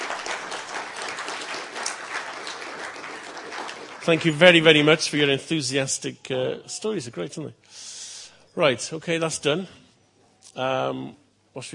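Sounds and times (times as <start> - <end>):
audience applause: 0.0 - 5.0
speech: 4.0 - 7.9, 8.6 - 9.8, 10.6 - 11.7.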